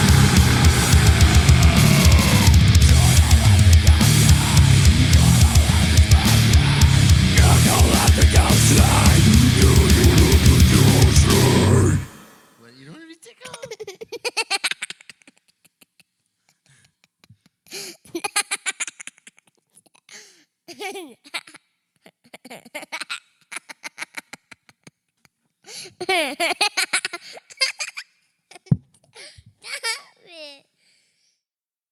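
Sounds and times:
metal cover song: 0:00.0 - 0:12.5.

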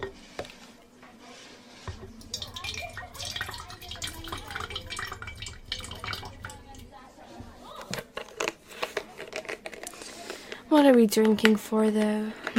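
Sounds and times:
liquid pouring into a glass: 0:02.0 - 0:06.9
speech: 0:10.8 - 0:12.5.

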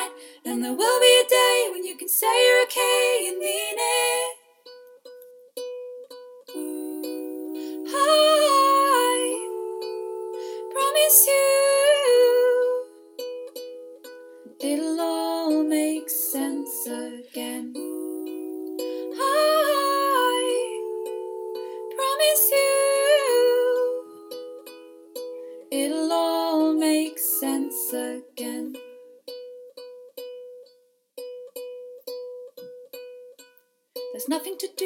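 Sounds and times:
person singing a cover: 0:00.0 - 0:04.4, 0:06.5 - 0:29.0
ukulele: 0:00.0 - 0:34.8.

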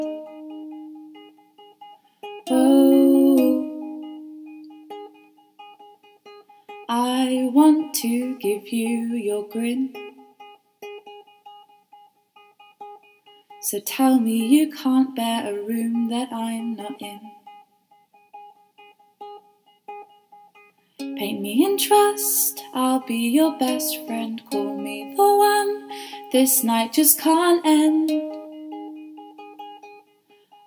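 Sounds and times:
person singing: 0:00.0 - 0:00.8, 0:02.3 - 0:05.0, 0:06.8 - 0:10.2, 0:13.5 - 0:17.5, 0:21.0 - 0:28.6
ukulele not tuned properly: 0:00.0 - 0:30.6.

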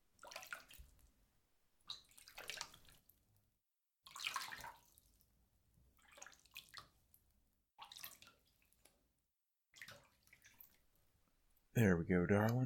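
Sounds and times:
water rinsing shampoo out of hair: 0:00.2 - 0:01.0, 0:01.9 - 0:03.1, 0:04.1 - 0:05.3, 0:06.0 - 0:07.0, 0:07.8 - 0:09.0, 0:09.7 - 0:11.0
speech: 0:11.8 - 0:12.6.

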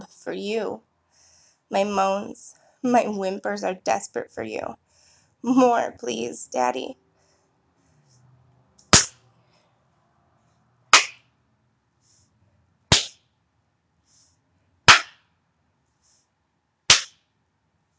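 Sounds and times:
speech: 0:00.2 - 0:00.9, 0:01.7 - 0:04.8, 0:05.4 - 0:07.0
hand slaps on skin: 0:09.0 - 0:09.2, 0:11.0 - 0:11.2, 0:12.9 - 0:13.2, 0:16.9 - 0:17.2.

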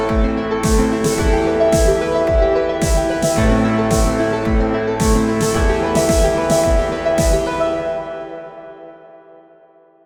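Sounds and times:
pianos: 0:00.0 - 0:10.0
snare drums: 0:00.6 - 0:07.8.

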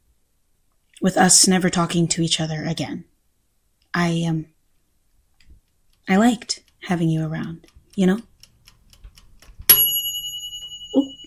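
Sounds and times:
speech: 0:01.0 - 0:03.1, 0:03.9 - 0:04.5, 0:06.1 - 0:08.3
cooker timer going off: 0:06.1 - 0:11.2.

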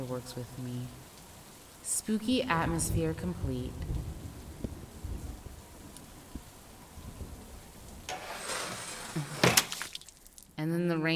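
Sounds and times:
speech: 0:00.0 - 0:01.1, 0:01.8 - 0:04.1
window being wrenched open: 0:08.1 - 0:09.9.

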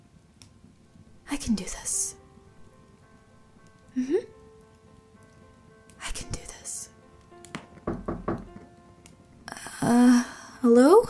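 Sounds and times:
speech: 0:01.3 - 0:02.2, 0:04.0 - 0:04.2, 0:10.7 - 0:11.0
knocking on a door: 0:07.5 - 0:08.7.

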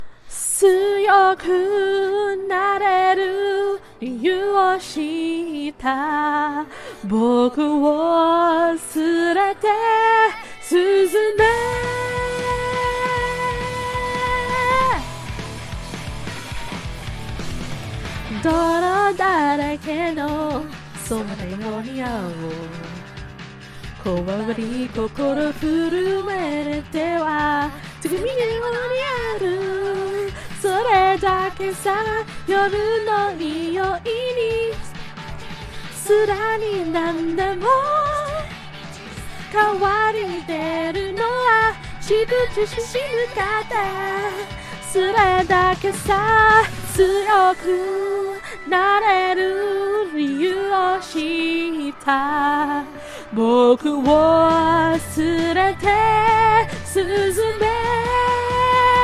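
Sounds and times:
person singing: 0:00.5 - 0:15.2, 0:18.2 - 0:23.1, 0:24.0 - 0:35.1, 0:35.7 - 0:59.0.

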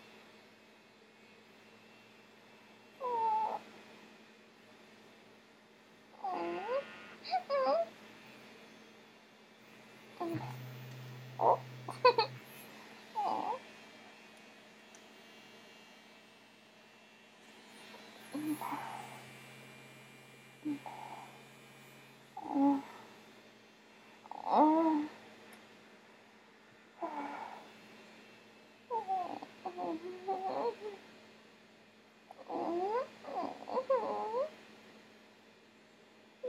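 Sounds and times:
whimpering: 0:03.0 - 0:03.6, 0:06.2 - 0:07.9, 0:10.2 - 0:13.6, 0:18.2 - 0:19.3, 0:20.7 - 0:21.4, 0:22.4 - 0:23.0, 0:24.3 - 0:25.1, 0:27.0 - 0:27.7, 0:28.9 - 0:31.0, 0:32.3 - 0:34.5
girl gagging: 0:11.2 - 0:12.4.

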